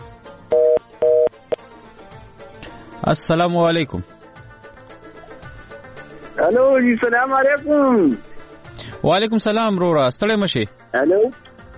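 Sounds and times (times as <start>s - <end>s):
telephone ringing tone on a phone call: 0.5s - 1.6s
speech: 3.0s - 4.1s, 6.5s - 8.3s, 9.0s - 11.4s.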